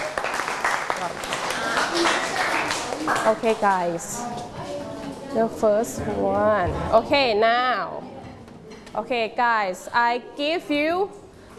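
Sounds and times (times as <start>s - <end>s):
group of students clapping hands: 0.0s - 3.8s
speech: 1.0s - 1.3s, 3.1s - 4.6s, 5.3s - 8.0s, 9.0s - 11.5s.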